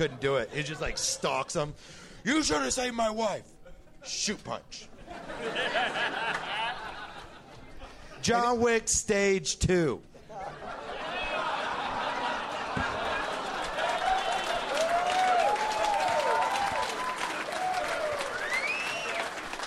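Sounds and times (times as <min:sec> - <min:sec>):
laughter: 0:00.0 - 0:01.7, 0:03.5 - 0:08.4, 0:10.2 - 0:19.5
speech: 0:00.0 - 0:06.5, 0:08.2 - 0:10.5
audience applause: 0:11.1 - 0:19.6.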